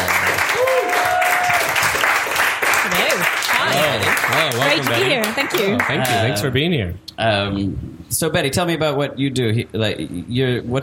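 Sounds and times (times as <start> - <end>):
audience applause: 0.0 - 6.4
speech: 4.5 - 10.8.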